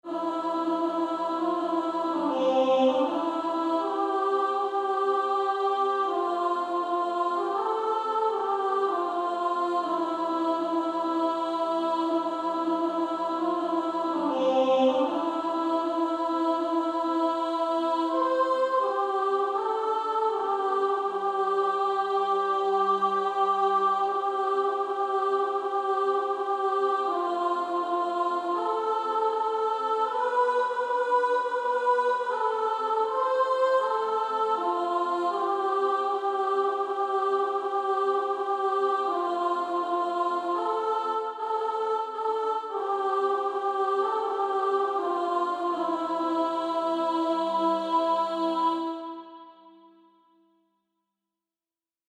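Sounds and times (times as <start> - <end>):
female soprano choir: 0.0 - 50.5.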